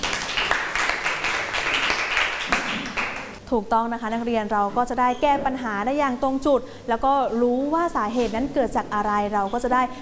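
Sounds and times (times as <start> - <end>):
classroom clapping for a classmate: 0.0 - 3.4
speech: 3.5 - 9.9.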